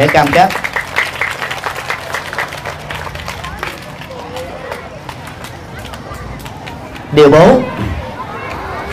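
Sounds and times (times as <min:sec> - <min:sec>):
speech: 0:00.0 - 0:00.6, 0:07.2 - 0:08.0
audience applause: 0:00.0 - 0:06.0.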